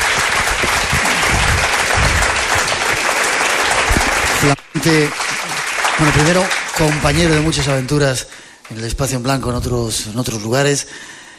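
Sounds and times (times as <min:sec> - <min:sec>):
audience applause: 0:00.0 - 0:08.5
speech: 0:04.4 - 0:05.2, 0:06.0 - 0:11.2.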